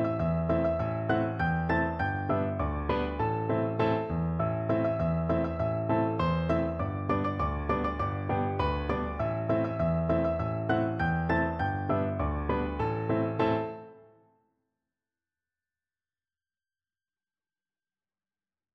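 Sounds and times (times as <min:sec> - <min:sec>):
piano duet: 0:00.0 - 0:14.2.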